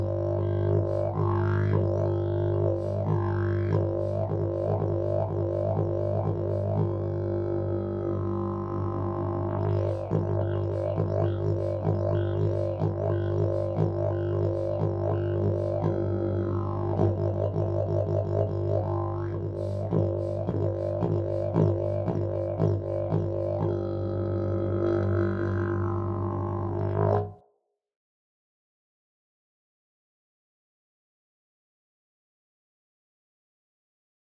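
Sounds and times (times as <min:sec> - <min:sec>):
ultrabass didgeridoo with 34 mm bore: 0:00.0 - 0:27.4.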